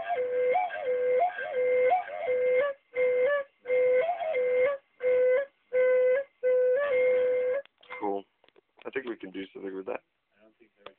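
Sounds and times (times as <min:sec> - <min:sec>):
Bali mushroom flute: 0:00.0 - 0:08.2.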